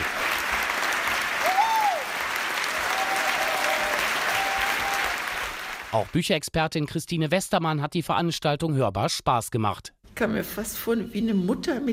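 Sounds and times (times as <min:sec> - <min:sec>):
long sustained audience applause: 0:00.0 - 0:06.1
speech: 0:05.9 - 0:11.9.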